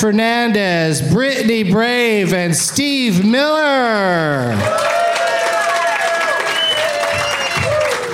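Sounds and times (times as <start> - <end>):
speech: 0.0 - 5.1
audience applause and cheering welcoming guests onto a show: 4.0 - 8.1.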